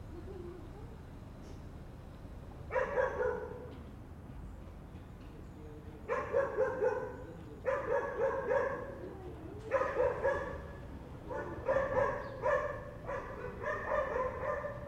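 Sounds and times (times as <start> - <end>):
dogs barking in short harmonic bursts: 2.7 - 3.8, 6.0 - 14.8.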